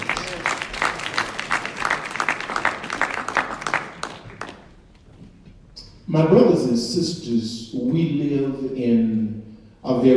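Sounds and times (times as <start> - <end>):
audience hand clapping: 0.0 - 5.0
speech: 6.1 - 10.1.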